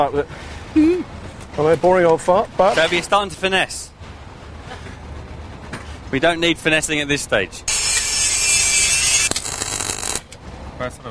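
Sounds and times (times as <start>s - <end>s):
speech: 0.0s - 3.9s, 6.1s - 7.8s, 10.8s - 11.1s
power grinder grinding the edges off metal before welding: 7.7s - 10.2s.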